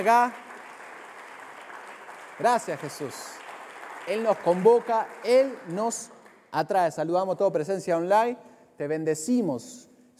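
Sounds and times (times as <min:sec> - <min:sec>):
speech: 0:00.0 - 0:00.4, 0:02.4 - 0:03.4, 0:04.0 - 0:10.1
audience applause: 0:00.0 - 0:06.4.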